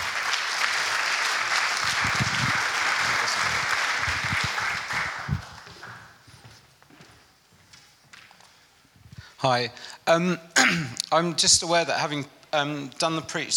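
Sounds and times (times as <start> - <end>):
crowd applauding: 0.0 - 6.2
speech: 9.4 - 13.5.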